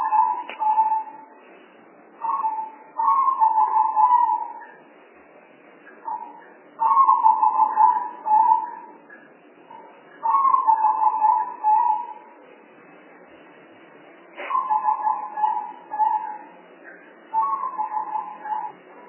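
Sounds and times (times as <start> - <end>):
spotted dove cooing: 0.0 - 1.2, 2.2 - 4.7, 6.1 - 8.9, 10.2 - 12.3, 14.4 - 16.5, 17.4 - 19.0.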